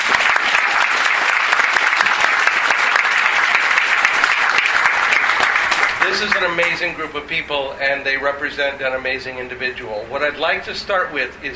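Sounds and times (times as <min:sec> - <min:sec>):
audience applause: 0:00.0 - 0:06.8
speech: 0:06.2 - 0:11.5.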